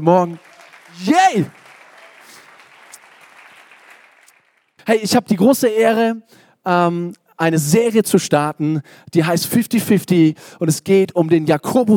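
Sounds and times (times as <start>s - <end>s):
speech: 0.0s - 1.6s, 4.9s - 11.9s
audience applause: 0.0s - 4.8s.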